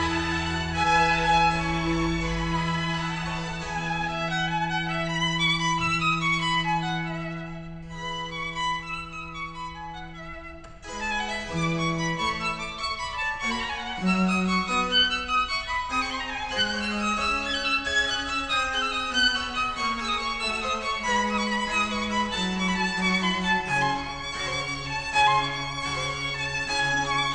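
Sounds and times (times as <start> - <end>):
classical music: 0.0 - 27.3.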